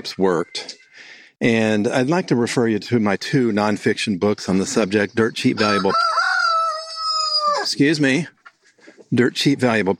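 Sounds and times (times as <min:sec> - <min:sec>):
speech: 0:00.0 - 0:00.8, 0:01.4 - 0:06.2, 0:07.7 - 0:08.4, 0:09.1 - 0:09.9
rooster crowing: 0:05.6 - 0:07.7.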